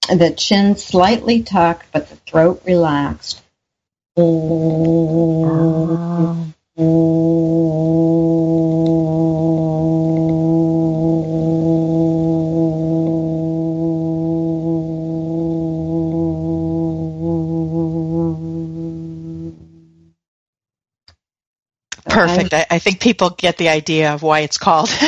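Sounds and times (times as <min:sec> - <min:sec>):
speech: 0:00.1 - 0:03.4, 0:04.2 - 0:10.2, 0:22.2 - 0:25.0
bee breath buzzing hum with closed lips: 0:04.2 - 0:20.1.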